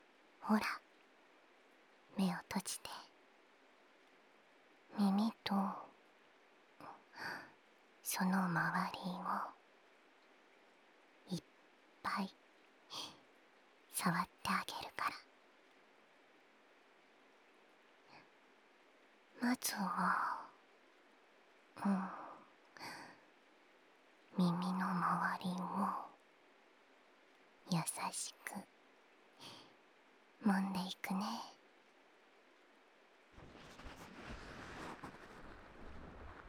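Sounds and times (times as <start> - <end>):
rain: 0.0 - 14.2, 14.8 - 36.4
ASMR ear massage sounds: 33.4 - 36.4.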